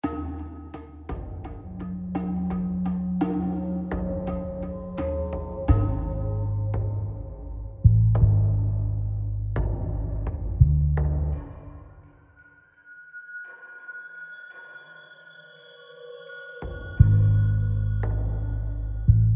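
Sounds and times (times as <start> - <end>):
tension music: 0.0 - 12.5, 16.9 - 19.3.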